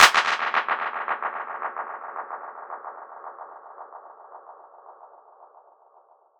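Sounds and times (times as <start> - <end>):
hand clap: 0.0 - 1.6.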